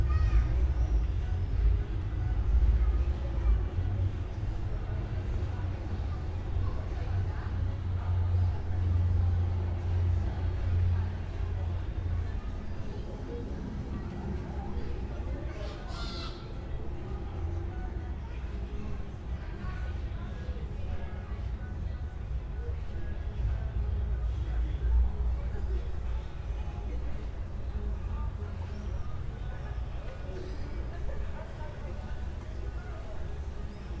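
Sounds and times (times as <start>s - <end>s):
residential play street ambience in a traffic-calmed zone: 0.0s - 33.9s.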